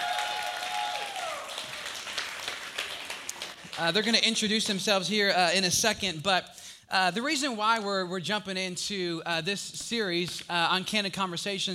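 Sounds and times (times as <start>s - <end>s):
audience applause welcoming two guests: 0.0s - 3.9s
speech: 3.8s - 11.7s.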